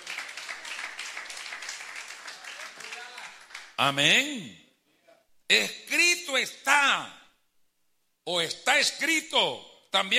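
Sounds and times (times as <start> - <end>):
audience applauding: 0.0 - 3.8
speech: 3.8 - 4.6, 5.5 - 7.2, 8.2 - 10.1.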